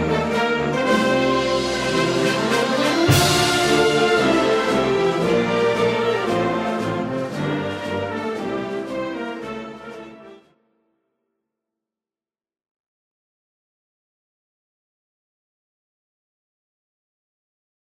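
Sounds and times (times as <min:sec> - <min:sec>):
Nordic fanfare: 0:00.0 - 0:10.5.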